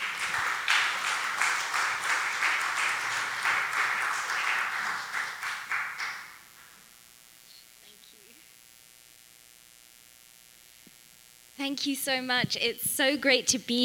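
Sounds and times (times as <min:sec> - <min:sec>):
audience applause welcoming a guest speaker: 0:00.0 - 0:06.5
speech: 0:11.7 - 0:13.8.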